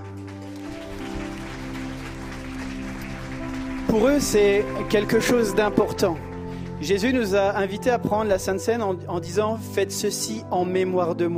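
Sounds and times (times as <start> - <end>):
audience applauding: 0.0 - 7.8
sustained musical notes: 0.2 - 9.6
speech: 3.9 - 11.3.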